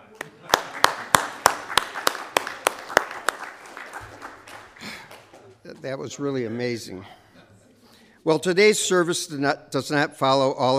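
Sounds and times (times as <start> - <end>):
audience applause: 0.0 - 5.5
speech: 5.8 - 7.2, 8.2 - 10.7.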